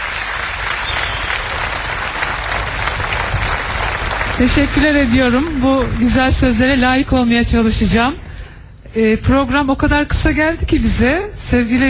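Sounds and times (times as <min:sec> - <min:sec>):
audience applause greeting a performer at a live show: 0:00.0 - 0:05.9
speech: 0:04.4 - 0:08.2, 0:09.0 - 0:11.8.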